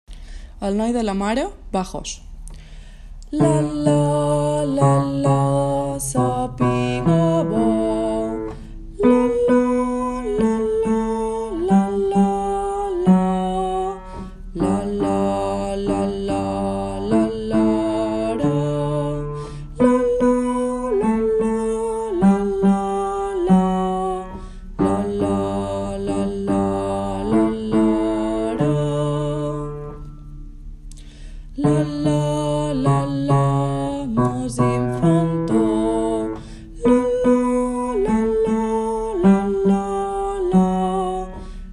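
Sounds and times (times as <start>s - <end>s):
bass: 0.0s - 41.7s.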